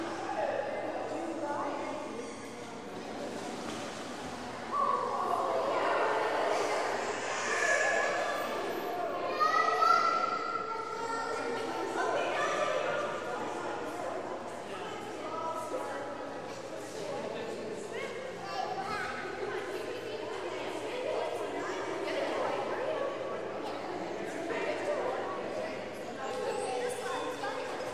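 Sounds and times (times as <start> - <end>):
swimming pool sounds: 0.0 - 27.9.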